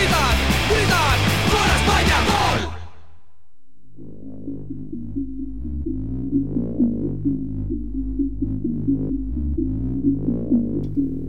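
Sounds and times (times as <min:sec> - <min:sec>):
football crowd roaring celebrating a goal for Spain: 0:00.0 - 0:03.0
low droning with faint rhythmic pulses: 0:03.4 - 0:11.2.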